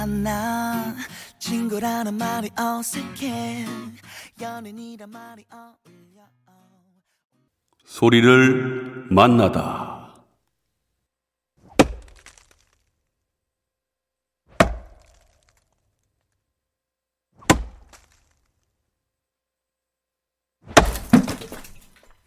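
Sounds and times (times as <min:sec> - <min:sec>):
speech: 0:00.0 - 0:06.4, 0:07.9 - 0:10.0
axe splitting firewood logs: 0:11.6 - 0:12.9, 0:14.5 - 0:15.8, 0:17.4 - 0:18.5, 0:20.7 - 0:22.1.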